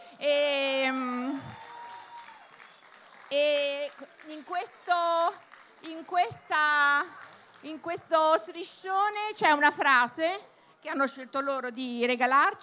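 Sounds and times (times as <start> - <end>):
speech: 0.2 - 1.0, 6.0 - 12.6
crowd cheering and whooping: 1.2 - 3.4
crowd applauding: 1.2 - 8.2.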